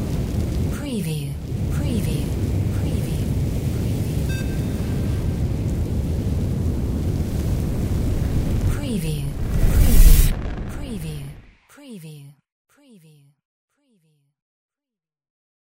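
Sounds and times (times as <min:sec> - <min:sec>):
sci-fi fire spell: 0:00.0 - 0:11.6.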